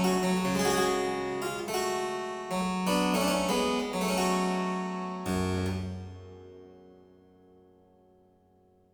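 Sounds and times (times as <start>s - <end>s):
harpsichord playing a courante from a suite: 0.0s - 6.2s.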